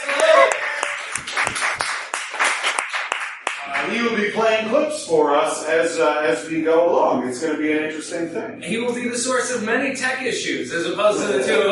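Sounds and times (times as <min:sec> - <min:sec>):
crowd applauding: 0:00.0 - 0:04.0
speech: 0:04.4 - 0:11.6.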